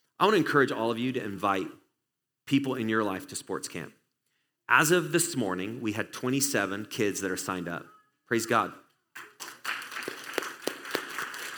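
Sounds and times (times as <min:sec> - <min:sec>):
speech: 0:00.2 - 0:01.8, 0:02.5 - 0:04.0, 0:04.7 - 0:09.3
applause: 0:09.2 - 0:11.5.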